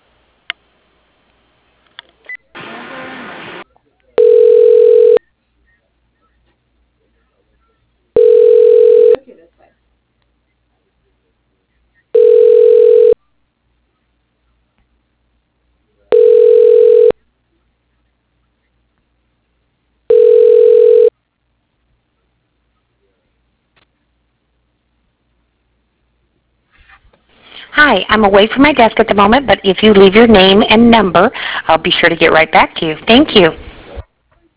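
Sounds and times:
telephone ringback tones as a call is transferred to voicemail: 4.2 - 5.2, 8.2 - 9.2, 12.2 - 13.2, 16.1 - 17.2, 20.1 - 21.1
speech: 27.8 - 33.7.

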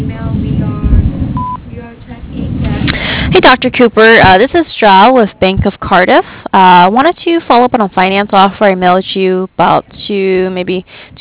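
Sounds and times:
low rumbling murmur: 0.0 - 11.1
answering machine beep: 1.4 - 1.6
speech: 3.4 - 11.1.

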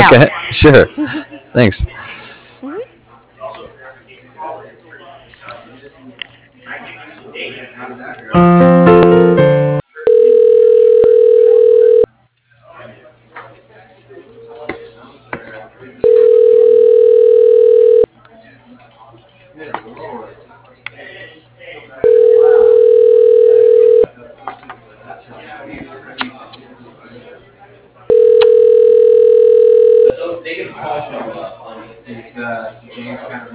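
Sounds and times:
speech: 0.0 - 2.0, 7.8 - 9.5
people talking quietly: 0.0 - 8.5, 10.0 - 33.5
telephone dialing tones: 8.7 - 12.1, 16.0 - 18.1, 22.1 - 24.1, 28.1 - 30.1.

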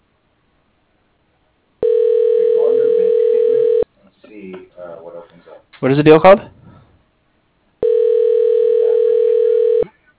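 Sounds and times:
telephone ringing tone: 1.8 - 3.8, 7.8 - 9.9
speech: 5.8 - 6.5.

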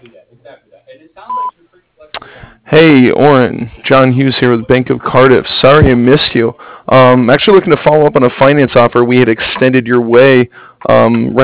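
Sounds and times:
speech: 0.0 - 1.7, 2.7 - 11.4
voicemail beep tone: 1.3 - 1.5.

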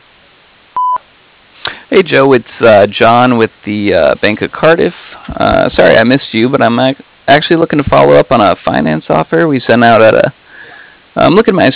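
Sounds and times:
voicemail tone: 0.8 - 1.0
speech: 1.9 - 10.4, 11.2 - 11.7.

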